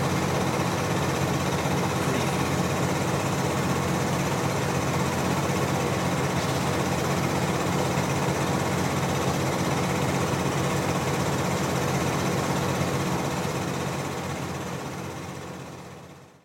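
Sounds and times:
machine power generator running: 0:00.0 - 0:16.4.

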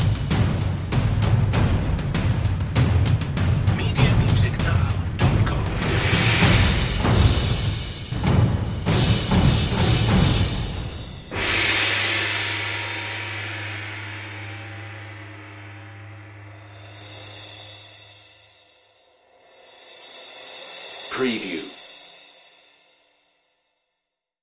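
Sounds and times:
percussion mix: 0:00.0 - 0:15.0, 0:19.5 - 0:22.2.

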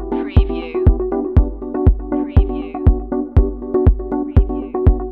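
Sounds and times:
communication beacon signal: 0:00.1 - 0:00.9, 0:02.1 - 0:02.9, 0:04.3 - 0:04.9.

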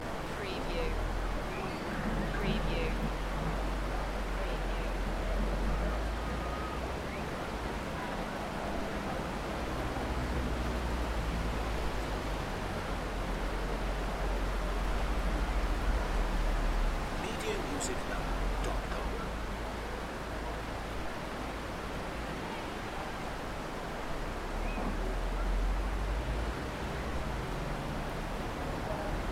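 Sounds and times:
rain on a Spanish promenade: 0:00.0 - 0:29.2.

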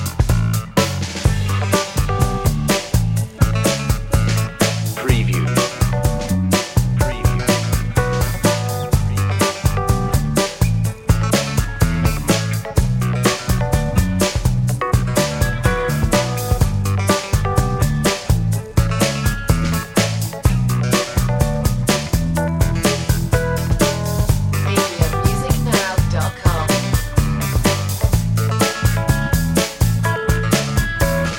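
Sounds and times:
happy groove music: 0:00.0 - 0:31.3.

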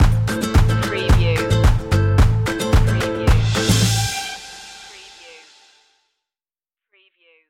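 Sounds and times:
latin stomp stinger: 0:00.0 - 0:04.1.

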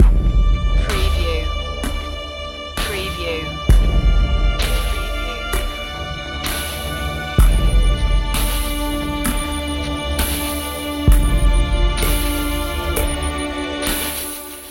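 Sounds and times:
dark music loop: 0:00.0 - 0:14.6.

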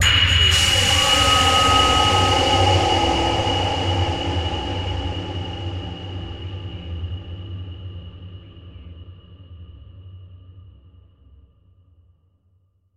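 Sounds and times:
metal hit: 0:00.0 - 0:07.6.

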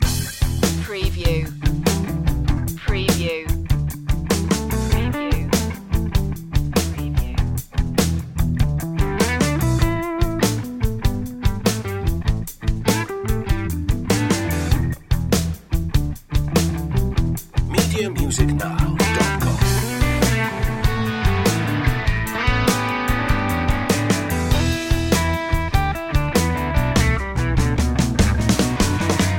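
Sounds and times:
club blues loop: 0:00.0 - 0:29.3.

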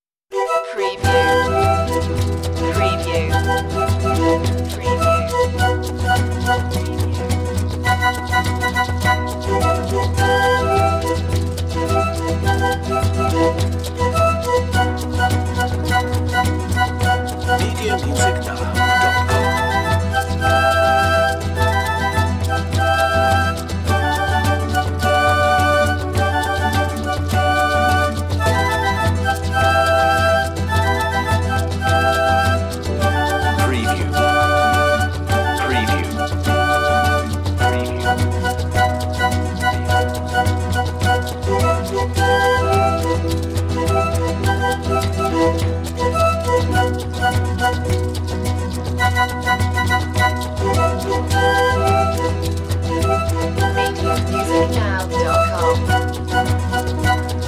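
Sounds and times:
Peruvian song: 0:00.3 - 0:57.4.

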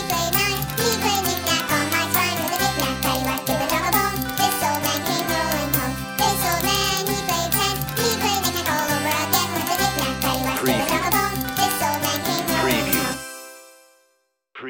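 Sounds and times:
chipmunk-style singing voice: 0:00.0 - 0:13.2.

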